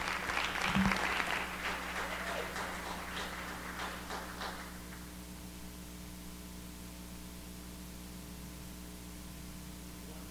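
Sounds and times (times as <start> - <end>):
audience applause welcoming a speaker at a morning gathering: 0.0 - 5.1.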